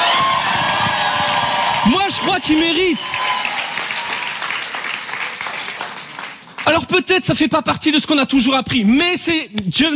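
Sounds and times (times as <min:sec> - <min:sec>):
audience cheering and shouting at a Christian worship gathering: 0:00.0 - 0:04.8
speech: 0:01.8 - 0:03.2, 0:06.9 - 0:09.9.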